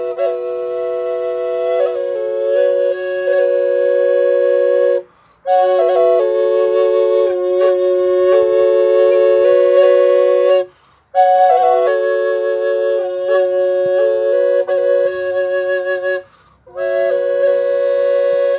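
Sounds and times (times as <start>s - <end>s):
native triple flute playing F: 0.0s - 18.5s.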